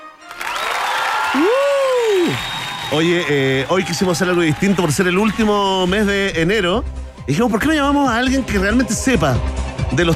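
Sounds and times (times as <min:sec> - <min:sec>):
studio audience applause: 0:00.2 - 0:05.9
speech: 0:01.4 - 0:01.6, 0:02.3 - 0:10.1.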